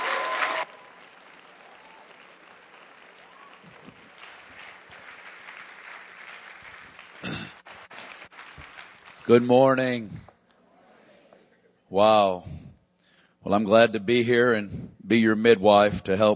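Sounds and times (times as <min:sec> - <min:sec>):
church congregation applause welcoming a guest speaker: 0:00.0 - 0:10.0
speech: 0:09.3 - 0:10.3, 0:11.9 - 0:12.6, 0:13.5 - 0:16.3.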